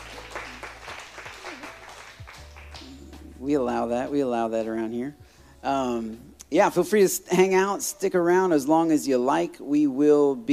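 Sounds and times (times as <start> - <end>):
audience hand clapping: 0.0 - 3.2
speech: 3.4 - 10.5.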